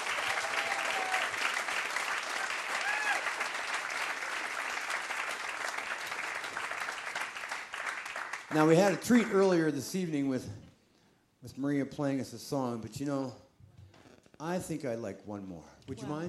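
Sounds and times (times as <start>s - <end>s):
whoops: 0.0s - 1.6s, 2.4s - 3.5s
audience applause: 0.0s - 9.3s
speech: 8.5s - 10.6s, 11.4s - 13.4s, 14.4s - 16.2s.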